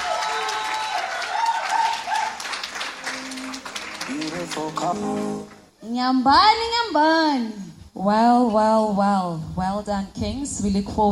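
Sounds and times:
audience applause: 0.0s - 5.7s
speech: 4.6s - 11.1s.

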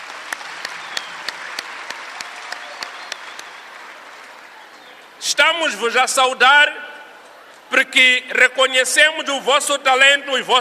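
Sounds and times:
audience applause: 0.0s - 4.8s
speech: 5.2s - 6.9s, 7.7s - 10.5s.

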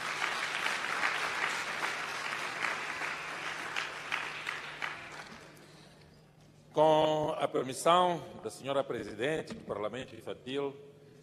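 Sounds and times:
crowd applause: 0.0s - 5.6s
speech: 6.8s - 10.9s.

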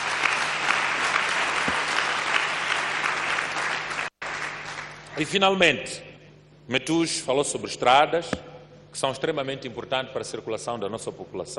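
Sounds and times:
round of applause: 0.0s - 5.3s
speech: 5.2s - 6.1s, 6.7s - 11.5s.

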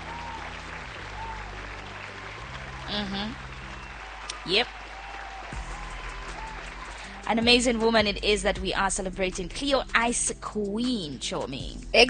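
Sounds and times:
applause: 0.0s - 8.0s
speech: 2.9s - 3.5s, 4.4s - 4.8s, 7.3s - 12.0s.

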